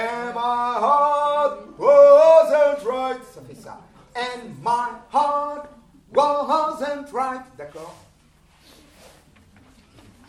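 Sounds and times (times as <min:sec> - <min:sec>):
tenor singing: 0:00.0 - 0:08.1.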